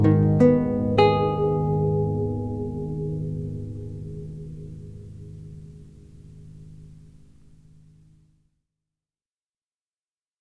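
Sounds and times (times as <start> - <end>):
lute partita prelude in C minor: 0.0 - 7.8.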